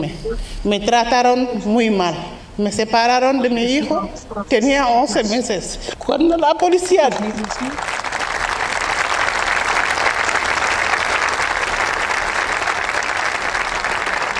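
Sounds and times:
speech: 0:00.0 - 0:08.0
large audience applauding emotionally: 0:06.8 - 0:14.3.

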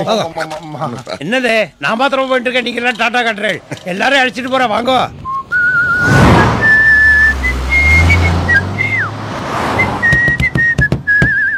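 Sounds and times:
speech: 0:00.0 - 0:05.2
person whistling a tune: 0:05.2 - 0:09.1, 0:09.8 - 0:11.5
whooshing background: 0:05.7 - 0:08.5
low rumble: 0:05.8 - 0:08.2.

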